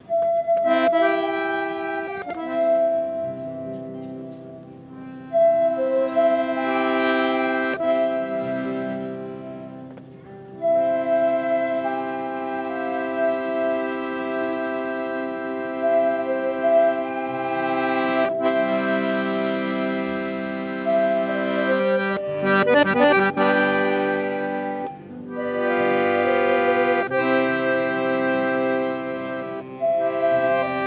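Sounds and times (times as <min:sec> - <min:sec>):
pan flute: 0:00.0 - 0:30.8.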